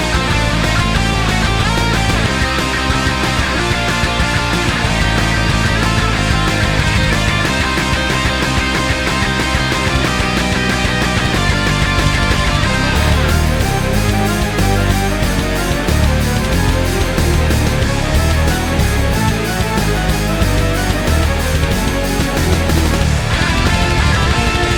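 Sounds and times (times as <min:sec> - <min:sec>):
rock cover song: 0:00.0 - 0:24.7.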